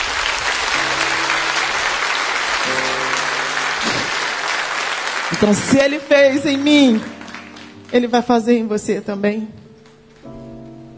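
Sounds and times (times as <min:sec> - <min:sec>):
audience applause: 0:00.0 - 0:08.4
speech: 0:05.4 - 0:07.2, 0:07.9 - 0:09.6.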